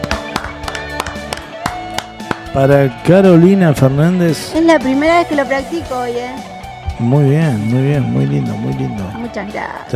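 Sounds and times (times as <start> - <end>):
audience applause: 0.0 - 2.5
speech: 2.6 - 9.9.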